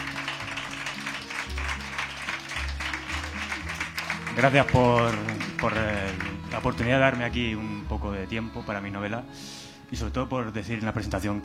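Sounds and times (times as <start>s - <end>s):
audience applause: 0.0s - 7.1s
speech: 4.4s - 11.4s.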